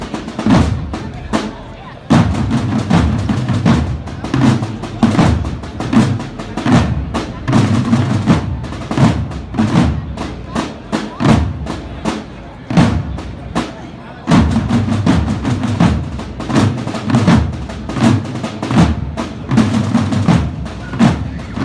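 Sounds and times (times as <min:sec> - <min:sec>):
military bolero music: 0:00.0 - 0:21.6.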